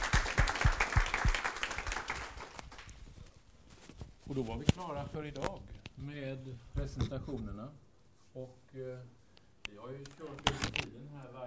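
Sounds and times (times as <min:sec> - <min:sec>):
audience applause: 0:00.0 - 0:02.9
speech: 0:04.3 - 0:07.8, 0:08.4 - 0:11.4.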